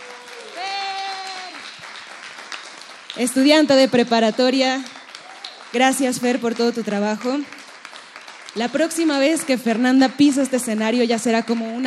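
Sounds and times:
audience applause: 0.0s - 10.3s
speech: 3.2s - 4.9s, 5.7s - 7.6s, 8.5s - 11.8s.

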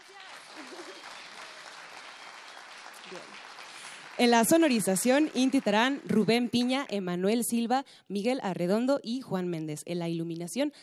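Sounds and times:
audience applause: 0.0s - 6.5s
laughter: 0.4s - 1.6s
speech: 3.1s - 3.4s, 4.2s - 10.8s.

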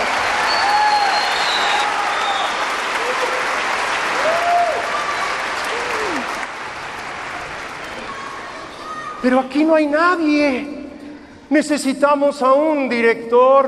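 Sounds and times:
audience applause for orchestra: 0.0s - 8.7s
cheers: 0.0s - 9.2s
whistles: 0.4s - 2.7s
speech: 9.2s - 10.8s, 11.5s - 13.6s.

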